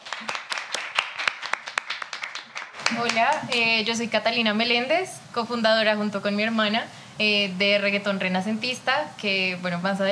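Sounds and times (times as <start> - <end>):
small group of audience clapping: 0.0 - 3.7
speech: 2.9 - 10.1.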